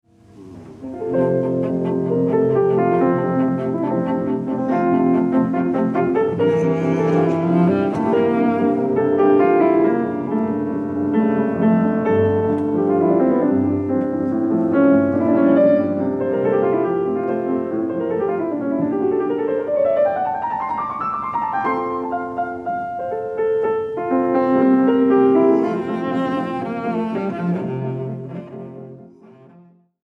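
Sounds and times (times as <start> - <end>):
cello sonata in F major: 0.0 - 30.0.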